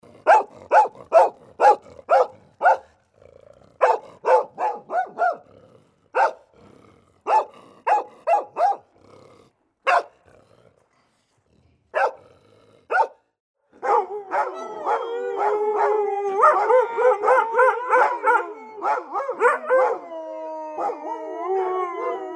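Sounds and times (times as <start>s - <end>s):
dog barking: 0.2s - 2.9s, 3.8s - 5.5s, 6.1s - 6.5s, 7.2s - 8.9s, 9.8s - 10.2s, 11.9s - 12.2s, 12.9s - 20.0s.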